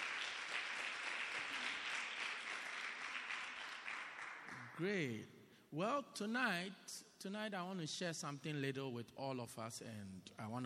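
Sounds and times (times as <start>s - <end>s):
crowd clapping: 0.0s - 4.8s
speech: 4.7s - 10.6s.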